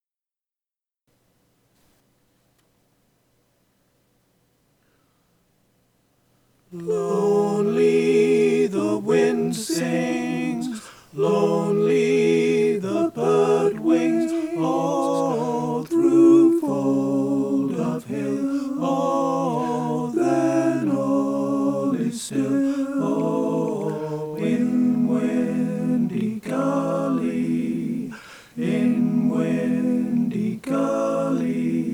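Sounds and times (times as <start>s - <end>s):
alto tenor bass choir singing: 6.7s - 31.9s.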